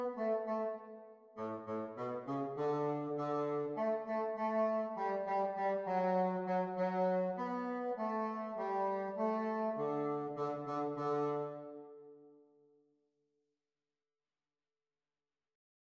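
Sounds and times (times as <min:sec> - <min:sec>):
bassoon duet: 0:00.0 - 0:11.9.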